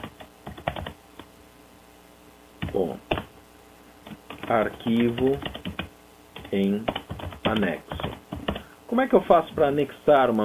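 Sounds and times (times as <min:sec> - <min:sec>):
typing a message on a computer keyboard: 0:00.0 - 0:01.0, 0:04.1 - 0:08.7
speech: 0:02.8 - 0:03.2, 0:04.5 - 0:05.6, 0:06.5 - 0:07.9, 0:08.9 - 0:10.4.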